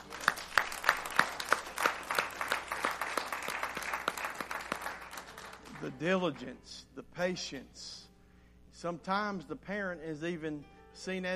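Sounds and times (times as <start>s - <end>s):
audience applause: 0.0s - 6.0s
speech: 5.8s - 8.0s, 8.8s - 11.3s.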